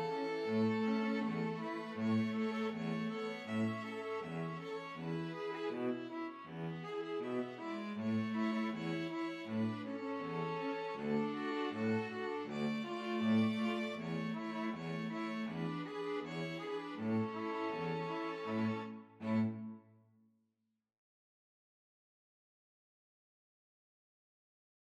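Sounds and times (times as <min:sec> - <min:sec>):
string quartet playing folk tune: 0:00.0 - 0:19.8.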